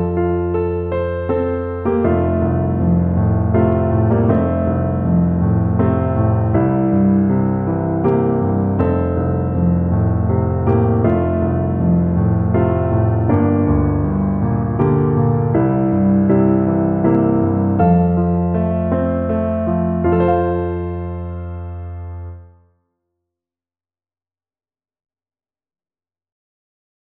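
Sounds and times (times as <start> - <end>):
tuba: 0.1 - 22.4.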